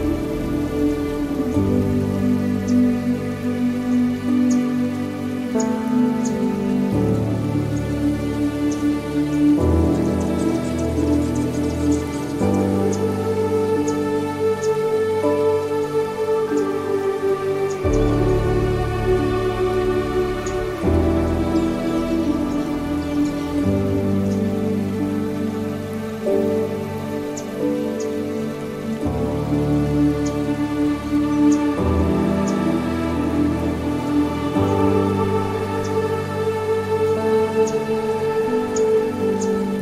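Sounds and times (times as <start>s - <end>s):
bird: 0.0s - 39.8s
piano: 0.0s - 39.8s.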